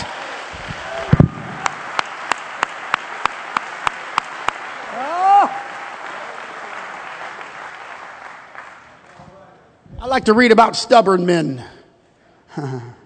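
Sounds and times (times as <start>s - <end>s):
audience clapping hands in steady unison: 0.0s - 9.2s
person whooping: 4.9s - 5.8s
speech: 10.1s - 11.8s, 12.5s - 13.0s.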